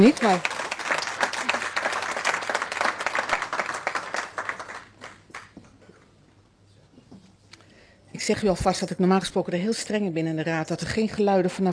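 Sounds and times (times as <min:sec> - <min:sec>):
speech: 0:00.0 - 0:00.5, 0:08.3 - 0:11.7
public gallery applause in a council chamber during a swearing-in: 0:00.0 - 0:05.8.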